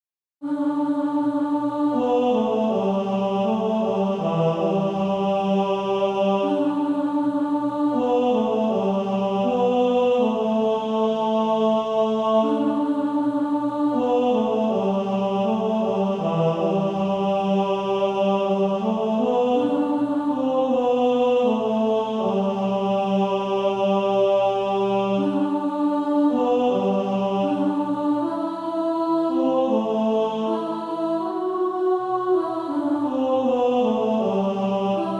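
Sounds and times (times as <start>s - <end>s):
male choir singing: 0.4s - 35.1s.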